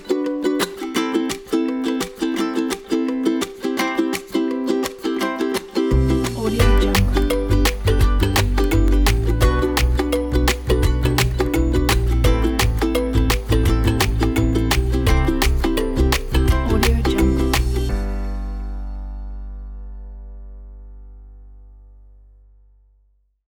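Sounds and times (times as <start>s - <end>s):
upbeat ukulele advertising background music: 0.0s - 18.5s.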